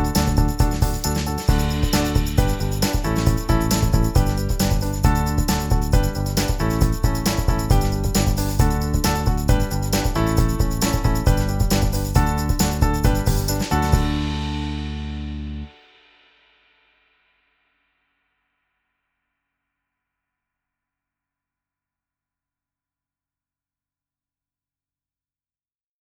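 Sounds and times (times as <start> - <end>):
jungle music: 0.0 - 15.7.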